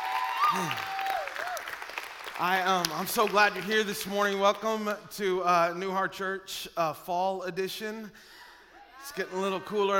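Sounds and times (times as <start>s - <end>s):
church congregation clapping during a Sunday service: 0.0s - 5.0s
speech: 0.5s - 0.9s, 2.4s - 8.4s, 9.0s - 9.9s.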